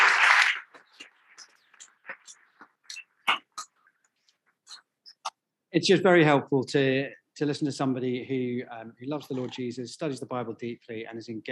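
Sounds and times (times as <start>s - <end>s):
audience applause: 0.0s - 1.0s
speech: 5.7s - 11.4s.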